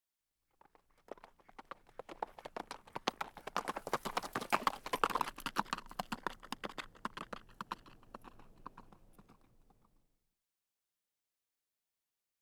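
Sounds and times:
horse cantering: 0:00.5 - 0:10.0.

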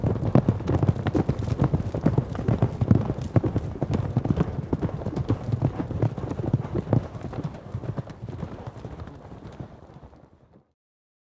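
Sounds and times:
horses galloping: 0:00.0 - 0:10.6.

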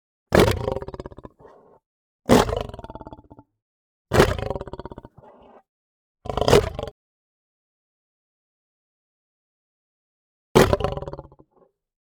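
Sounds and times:
lion snarling: 0:00.3 - 0:03.5, 0:04.1 - 0:05.7, 0:06.3 - 0:07.0.

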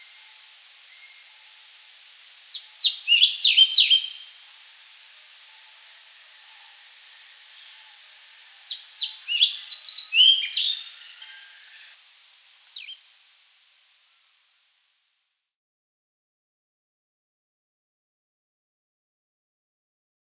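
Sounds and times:
European pied flycatcher song: 0:00.0 - 0:13.2.

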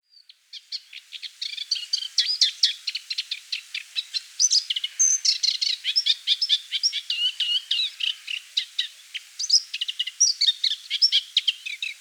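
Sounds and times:
Moustached warbler song: 0:00.0 - 0:11.9.

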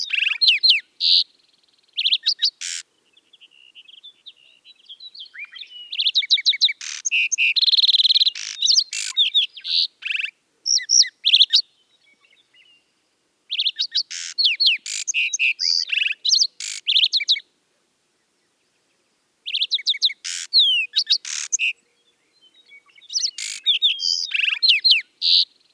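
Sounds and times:
Lark sparrow song with trills, buzzes and downslurred whistles: 0:00.0 - 0:17.5, 0:18.2 - 0:25.7.

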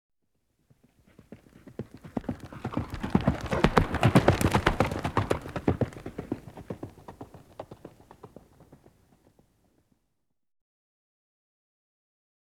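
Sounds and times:
horse galloping: 0:00.6 - 0:09.9.

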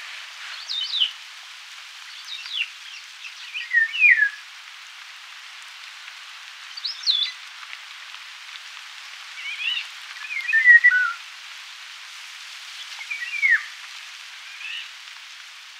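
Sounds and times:
Eurasian golden oriole singing fluty whistled phrases: 0:02.3 - 0:04.4, 0:09.4 - 0:11.2, 0:13.0 - 0:13.7.

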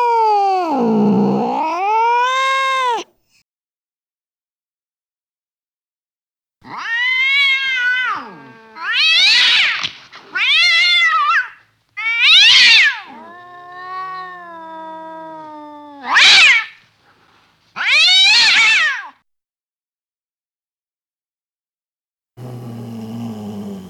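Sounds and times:
cat yowling: 0:00.0 - 0:03.1, 0:06.6 - 0:16.8, 0:17.8 - 0:19.2.

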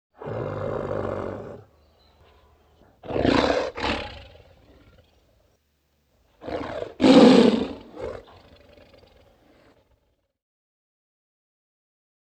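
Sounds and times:
tiger growling: 0:00.2 - 0:05.5, 0:06.4 - 0:10.0.

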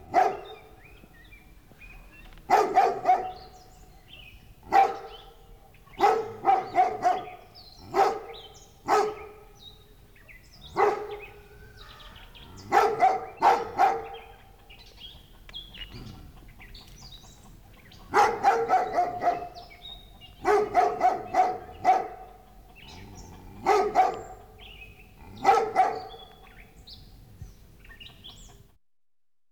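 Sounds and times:
dog barking: 0:00.0 - 0:00.8, 0:02.5 - 0:03.6, 0:04.6 - 0:09.6, 0:10.6 - 0:11.5, 0:12.6 - 0:14.5, 0:18.0 - 0:26.4.

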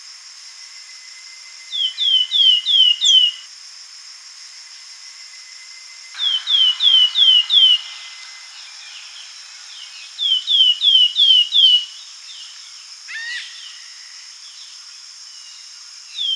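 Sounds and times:
persistent high insect-like buzz: 0:00.0 - 0:16.2
Slaty flycatcher falling whistled notes: 0:05.1 - 0:12.6.

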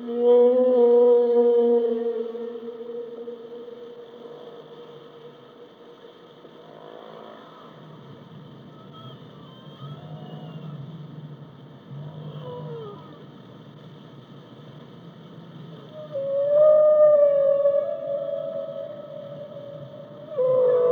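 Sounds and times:
humpback whale moaning: 0:00.0 - 0:05.5, 0:16.0 - 0:20.9.

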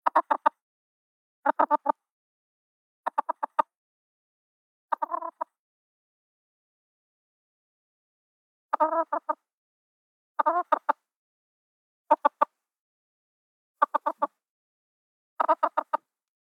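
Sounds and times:
chicken clucking: 0:00.0 - 0:00.6, 0:01.5 - 0:02.0, 0:03.1 - 0:03.7, 0:04.9 - 0:05.6, 0:08.7 - 0:09.4, 0:10.4 - 0:11.0, 0:12.1 - 0:12.6, 0:13.8 - 0:14.4, 0:15.4 - 0:16.1.

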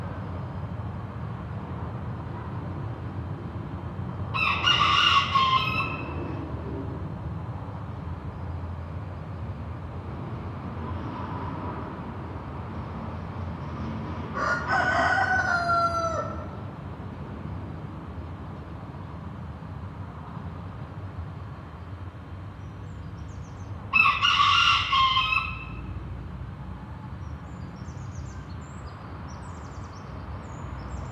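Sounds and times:
traffic rumble: 0:00.0 - 0:31.1
rooster crowing: 0:04.4 - 0:06.2, 0:14.3 - 0:16.6, 0:23.9 - 0:25.9.

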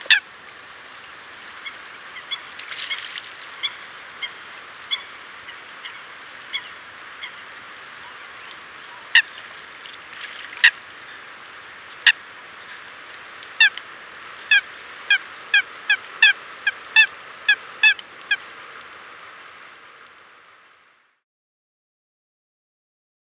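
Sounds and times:
hiss: 0:00.0 - 0:21.2
Eurasian coot sharp metallic calls: 0:13.1 - 0:13.7.

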